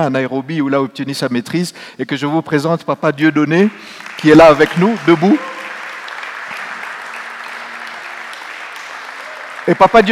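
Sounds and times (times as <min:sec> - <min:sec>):
speech: 0:00.0 - 0:05.5, 0:09.7 - 0:10.1
timid applause from an audience: 0:03.4 - 0:10.1.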